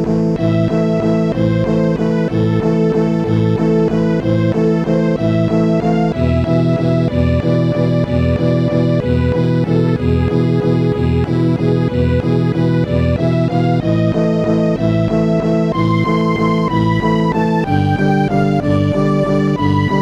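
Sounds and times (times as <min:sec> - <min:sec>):
jazz suite waltz: 0:00.2 - 0:20.0.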